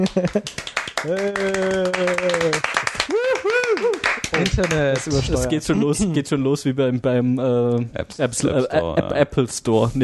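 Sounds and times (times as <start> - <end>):
speech: 0.0 - 2.9, 4.6 - 10.0
audience clapping: 0.0 - 5.5.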